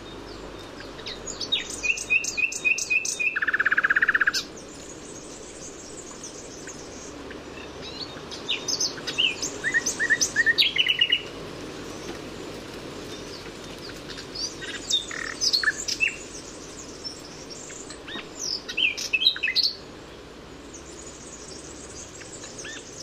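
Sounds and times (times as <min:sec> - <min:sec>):
common nightingale song: 0:00.0 - 0:23.0.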